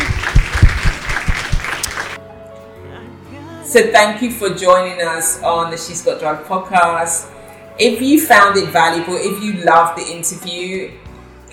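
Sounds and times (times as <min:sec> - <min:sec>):
round of applause: 0:00.0 - 0:02.2
speech: 0:03.7 - 0:11.5.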